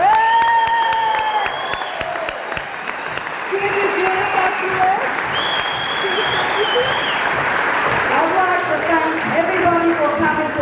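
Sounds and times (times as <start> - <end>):
high-pitched whoop from crowd: 0.0 - 2.4
crowd handclaps: 0.0 - 10.5.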